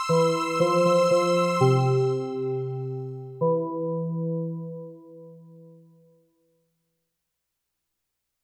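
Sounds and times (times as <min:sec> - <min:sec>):
instrument soundcheck: 0:00.1 - 0:05.7.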